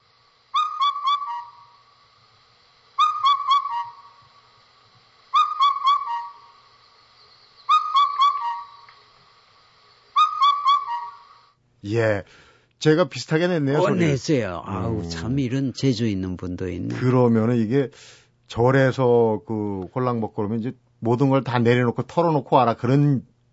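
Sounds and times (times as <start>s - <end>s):
field-recorded bird call: 0.5s - 1.9s, 3.0s - 4.2s, 5.3s - 6.6s, 7.6s - 9.0s, 10.2s - 11.5s
speech: 11.8s - 23.3s.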